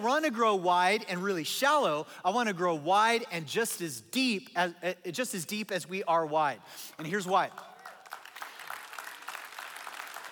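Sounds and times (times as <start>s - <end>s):
speech: 0.0s - 7.7s
audience clapping: 7.2s - 10.2s.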